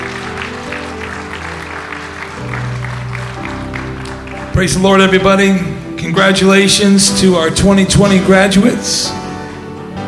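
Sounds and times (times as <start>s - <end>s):
church congregation clapping for graduates: 0.0s - 6.4s
low instrumental tones: 0.0s - 10.0s
speech: 4.6s - 9.2s.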